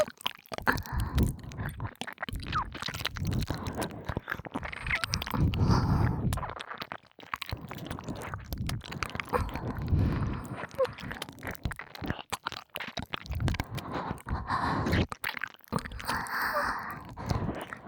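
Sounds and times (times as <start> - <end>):
binaural ear licking: 0.2 - 17.8
breathy exhales: 4.7 - 6.3, 9.4 - 11.2, 13.6 - 15.1, 15.8 - 17.8.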